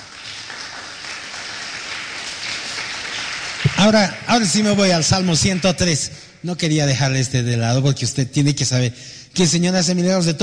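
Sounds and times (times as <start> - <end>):
audience applause: 0.0 - 6.0
speech: 3.8 - 10.4.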